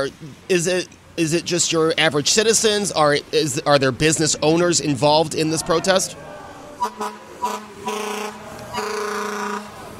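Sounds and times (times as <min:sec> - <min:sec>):
speech: 0:00.0 - 0:08.4
Buffalo fire truck honking while going by: 0:06.8 - 0:09.9.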